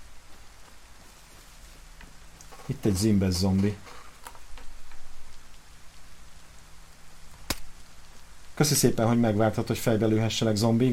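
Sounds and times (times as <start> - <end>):
rain falling in a zombie video game: 0.0 - 10.9
speech: 2.7 - 4.0, 8.6 - 10.9
sharp click: 7.4 - 7.7.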